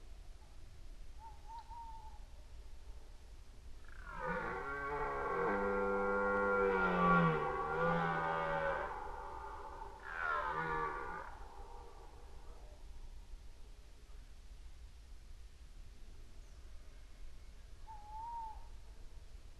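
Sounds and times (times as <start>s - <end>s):
red deer roaring: 4.0s - 12.5s.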